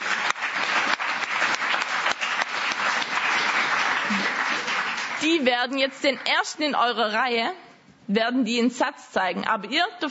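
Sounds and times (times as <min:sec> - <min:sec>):
audience applause: 0:00.0 - 0:05.5
speech: 0:05.2 - 0:10.0.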